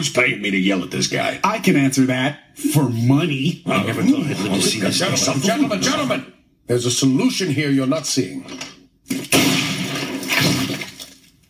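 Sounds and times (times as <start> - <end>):
speech: 0.0 - 9.3
laughter: 3.7 - 6.2
brains splattering on desk: 9.0 - 11.4
gunshot: 9.1 - 11.0.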